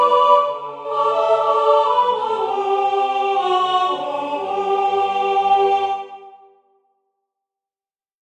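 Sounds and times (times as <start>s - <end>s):
soprano singing a chorale: 0.0s - 6.6s.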